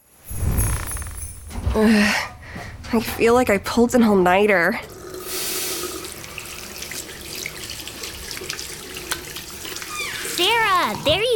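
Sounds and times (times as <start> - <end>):
speech: 1.8 - 2.3, 2.9 - 4.9
water running from a tap while washing hands: 3.7 - 11.3.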